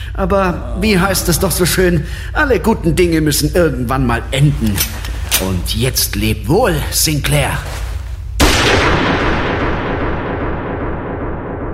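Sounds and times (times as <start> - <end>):
speech: 0.2 - 7.8
gunshot cracking through a room: 8.4 - 11.7.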